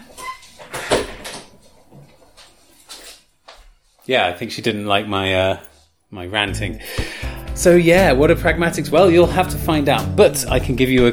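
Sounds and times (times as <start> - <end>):
door creaking open to let a cat out: 0.0 - 1.6
soft shuffling: 1.4 - 4.2
speech: 4.1 - 11.1.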